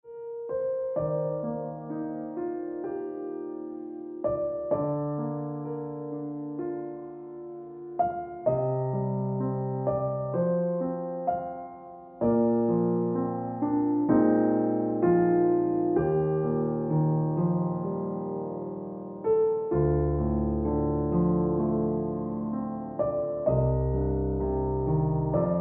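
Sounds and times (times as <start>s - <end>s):
piano music: 0.1s - 25.5s.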